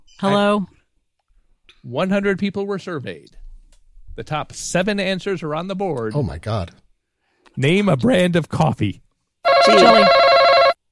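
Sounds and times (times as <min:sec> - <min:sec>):
speech: 0:00.2 - 0:00.8, 0:01.8 - 0:03.4, 0:04.2 - 0:06.8, 0:07.6 - 0:09.0, 0:09.6 - 0:10.3
game show buzz-in buzzer: 0:09.5 - 0:10.8.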